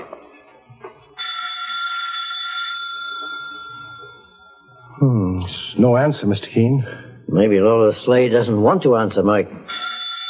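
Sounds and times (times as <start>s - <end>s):
doorbell ringing: 1.2s - 5.0s, 9.7s - 10.2s
speech: 5.0s - 9.8s.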